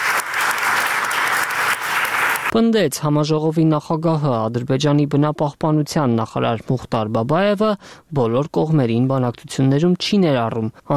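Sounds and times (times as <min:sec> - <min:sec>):
climate conference audience applause after a speech: 0:00.0 - 0:02.6
speech: 0:02.5 - 0:10.9.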